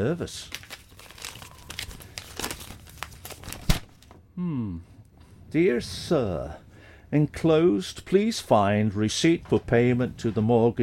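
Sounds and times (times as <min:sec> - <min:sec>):
speech: 0:00.0 - 0:00.6, 0:04.4 - 0:04.9, 0:05.5 - 0:10.8
paper banknotes crumpled and torn: 0:00.4 - 0:03.9.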